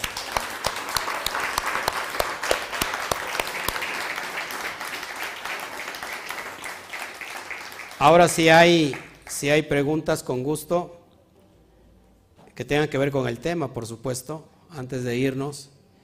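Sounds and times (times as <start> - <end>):
audience applause: 0.0 - 9.4
speech: 8.0 - 11.0, 12.6 - 15.8.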